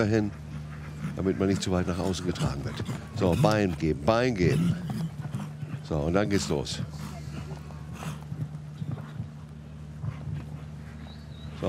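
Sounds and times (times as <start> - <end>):
speech: 0.0 - 0.4, 1.1 - 5.0, 5.9 - 7.1
horse hooves galloping on a show-jumping competition course: 0.0 - 11.6
steady low hum: 0.0 - 11.6.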